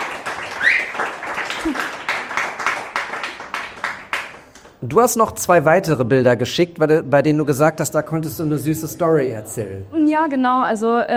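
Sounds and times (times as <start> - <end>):
applause: 0.0 - 4.9
speech: 4.8 - 11.1.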